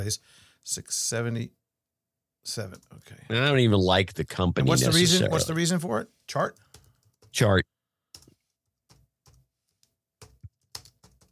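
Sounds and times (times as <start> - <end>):
speech: 0.0 - 1.6, 2.4 - 6.7, 7.3 - 7.7
quiet computer keyboard typing: 6.5 - 7.4, 8.1 - 11.3.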